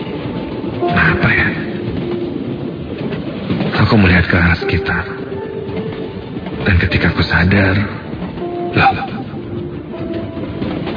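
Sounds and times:
train carriage rolling on rails: 0.0 - 10.9
speech: 0.8 - 1.6, 3.9 - 5.2, 6.6 - 8.0, 8.7 - 9.1.

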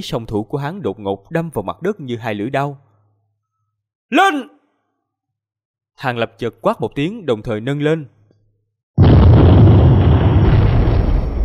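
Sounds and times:
speech: 0.0 - 2.9, 4.1 - 4.6, 6.0 - 8.2
explosion boom echoing through a valley as the ground splits open: 9.0 - 11.4.

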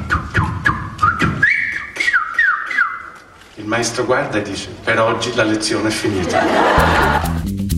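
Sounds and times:
whistled imitation of a small bird singing: 0.1 - 3.2
speech: 3.7 - 7.6
laughter: 5.8 - 7.4.

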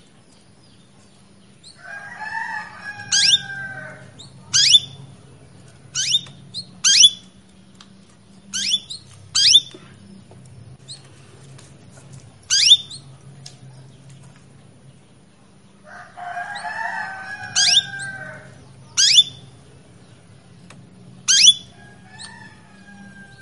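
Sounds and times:
female Belgian canary chirping to males: 0.3 - 5.2, 5.8 - 7.8, 8.4 - 11.1, 12.4 - 14.1, 16.0 - 23.3.

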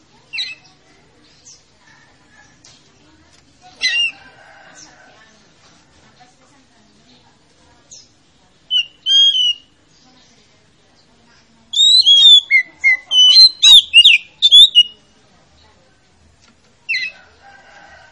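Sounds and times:
Oriental magpie-robin singing: 0.2 - 1.7, 3.7 - 5.0, 7.9 - 10.0, 11.7 - 15.1, 16.9 - 17.4.

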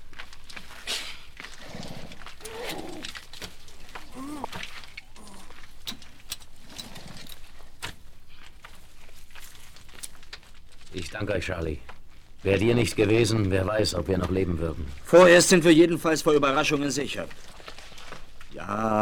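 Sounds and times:
horse hooves clopping as riders set off at night: 0.0 - 10.9
horse whinny: 1.5 - 3.4, 4.0 - 5.6
birds cooing and chirping: 1.9 - 6.0
speech: 11.0 - 17.5, 18.7 - 19.0.

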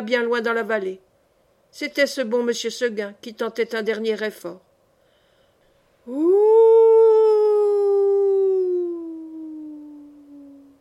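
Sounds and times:
speech: 0.0 - 1.1, 1.7 - 4.7, 6.1 - 6.5
wolf howling: 6.1 - 10.7.

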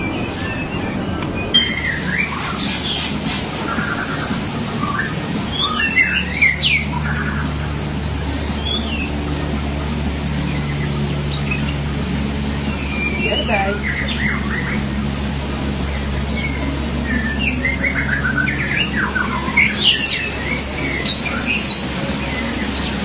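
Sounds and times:
loud constant low hum: 0.0 - 23.0
magpie-robin or shama song: 0.0 - 23.0.

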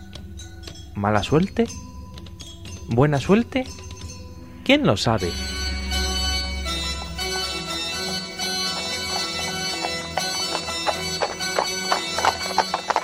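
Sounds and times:
horse hooves clip-clopping: 0.0 - 4.3, 6.6 - 13.0
speech: 1.0 - 1.9, 2.9 - 3.8, 4.7 - 5.6
steady tonal drone: 3.4 - 13.0
low rumble: 5.0 - 9.0.

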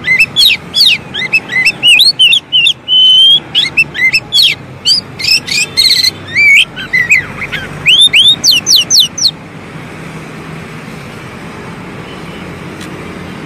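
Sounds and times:
Oriental magpie-robin singing: 0.0 - 9.4.

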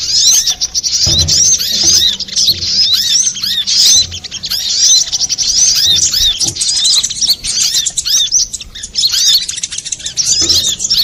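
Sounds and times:
little spiderhunter twittering: 0.0 - 11.0
soft thump: 1.0 - 3.1.

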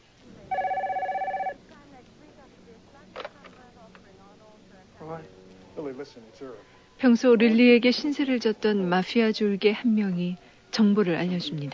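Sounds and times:
telephone bell ringing: 0.4 - 1.6
speech: 6.0 - 11.7.

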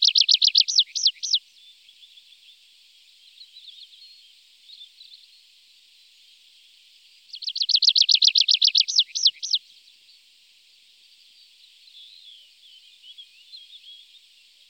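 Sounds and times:
tree pipit song: 0.0 - 14.6.

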